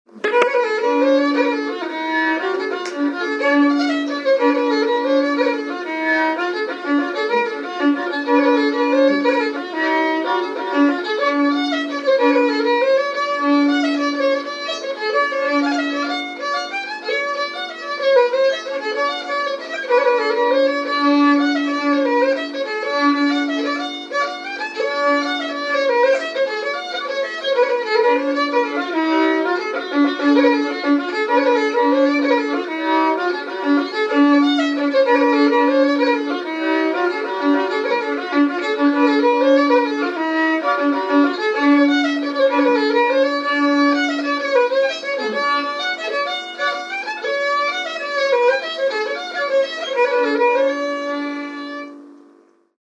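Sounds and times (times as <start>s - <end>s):
jig tune: 0.1s - 52.3s.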